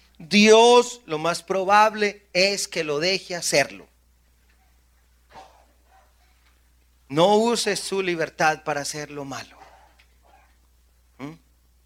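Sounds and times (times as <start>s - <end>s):
faint hum: 0.0s - 11.8s
speech: 0.2s - 3.9s, 7.1s - 9.6s, 11.2s - 11.4s
cough: 5.3s - 5.8s.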